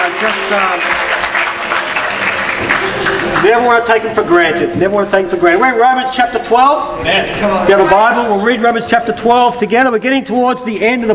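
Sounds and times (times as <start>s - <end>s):
audience applauding: 0.0s - 4.1s
faint murmur of voices: 0.0s - 11.1s
speech: 0.2s - 1.0s, 2.6s - 11.1s.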